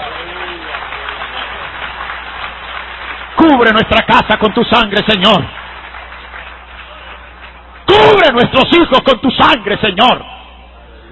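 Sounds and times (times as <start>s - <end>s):
audience applauding: 0.0s - 8.4s
speech: 3.4s - 5.6s, 8.3s - 10.4s.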